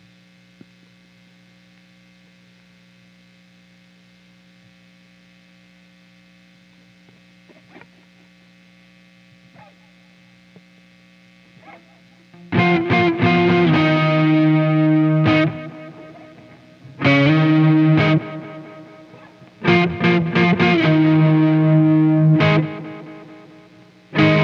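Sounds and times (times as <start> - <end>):
guitar: 7.0 - 8.4, 9.3 - 10.7, 11.4 - 24.4.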